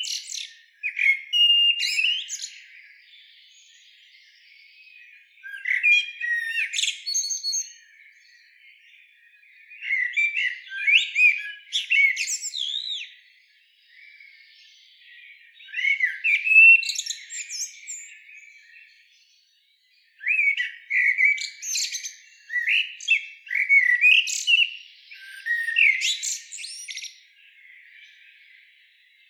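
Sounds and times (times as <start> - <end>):
common blackbird calls: 0.0 - 2.7, 5.4 - 7.8, 9.8 - 13.2, 15.6 - 18.5, 20.2 - 27.2.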